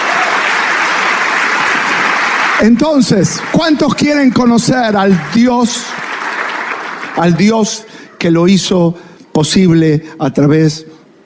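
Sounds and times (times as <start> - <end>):
church congregation applauding during a church service: 0.0 - 8.4
speech: 2.6 - 6.0, 7.2 - 11.2.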